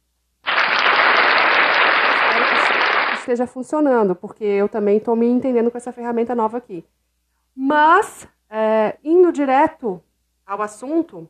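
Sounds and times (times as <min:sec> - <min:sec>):
applause sound effect from speaker: 0:00.4 - 0:03.3
speech: 0:03.3 - 0:07.0, 0:07.6 - 0:11.2.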